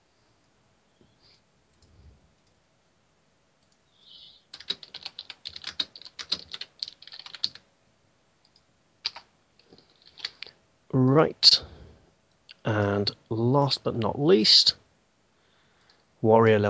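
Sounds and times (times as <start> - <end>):
computer keyboard typing while pasting descriptions into a Dragon Age character sheet: 4.5 - 7.6, 8.4 - 10.5
speech: 10.9 - 11.5, 13.0 - 14.8, 16.2 - 16.6.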